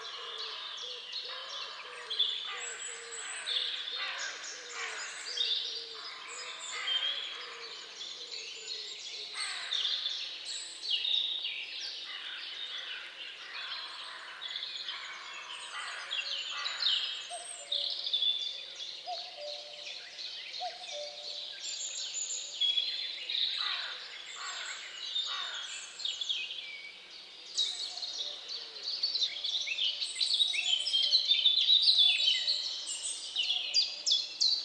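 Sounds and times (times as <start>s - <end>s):
bird chorus: 0.0s - 34.6s.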